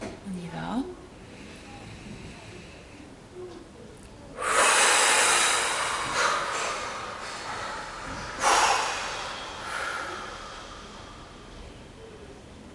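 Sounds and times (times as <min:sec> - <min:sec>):
deep exhale: 0:01.2 - 0:03.2, 0:04.4 - 0:12.4.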